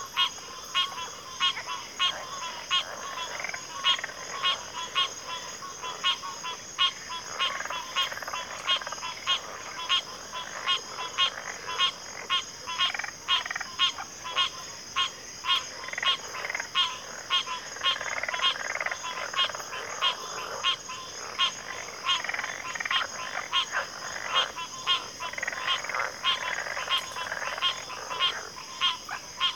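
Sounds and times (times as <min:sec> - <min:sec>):
chorus of crickets in a backwater: 0:00.0 - 0:29.5.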